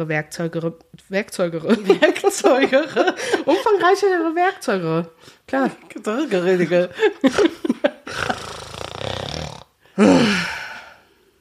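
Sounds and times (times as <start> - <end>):
speech: 0.0 - 8.3, 10.0 - 10.5
laughter: 1.7 - 4.2, 6.4 - 8.4
person grunting and straining with effort: 8.1 - 10.9.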